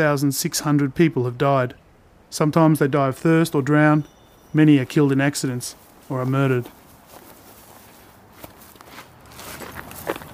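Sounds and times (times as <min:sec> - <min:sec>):
speech: 0:00.0 - 0:06.8
footsteps walking over gritty ground: 0:04.6 - 0:10.3.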